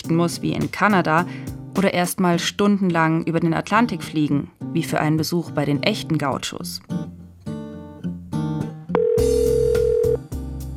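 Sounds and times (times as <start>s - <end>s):
speech: 0.1s - 7.0s
electronic telephone tone: 9.0s - 10.2s
chiming instrumental music: 9.2s - 10.2s.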